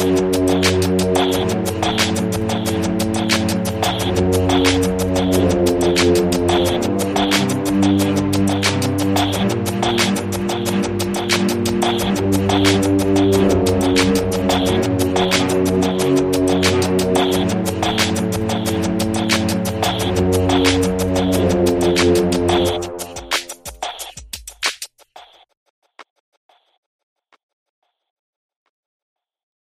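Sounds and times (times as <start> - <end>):
creepy killer tension suspense music: 0.0 - 23.6.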